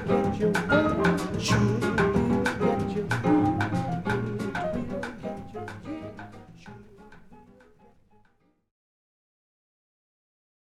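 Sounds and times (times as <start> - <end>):
bossa nova music: 0.0 - 8.3.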